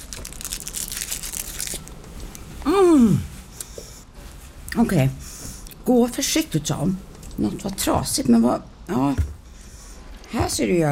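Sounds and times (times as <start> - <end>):
chocolate wrapper crinkling as it is unwrapped: 0.0 - 2.3
speech: 3.0 - 3.3, 4.8 - 5.2, 5.9 - 9.3, 10.4 - 10.8.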